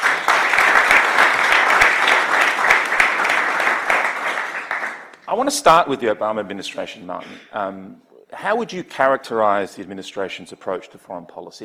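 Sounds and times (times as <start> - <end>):
audience applauding to welcome an ambassador onto the stage: 0.0 - 5.2
speech: 5.4 - 11.6.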